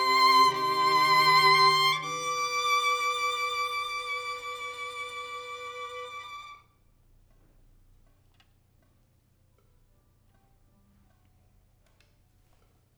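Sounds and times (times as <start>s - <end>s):
violin: 0.0s - 6.6s.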